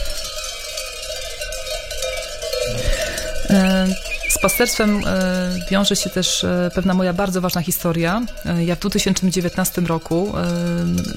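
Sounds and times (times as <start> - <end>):
livestock bells clanging: 0.0 - 11.1
speech: 3.5 - 11.1.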